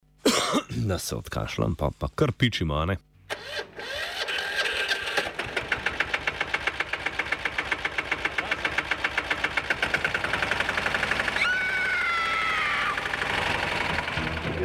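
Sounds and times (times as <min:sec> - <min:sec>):
speech: 0:00.5 - 0:03.7
cultivator engine running: 0:03.3 - 0:14.6.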